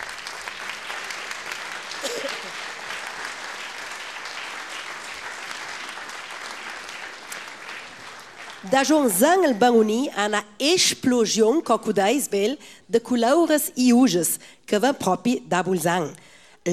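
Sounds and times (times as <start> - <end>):
audience applause: 0.0 - 10.1
speech: 8.6 - 16.7.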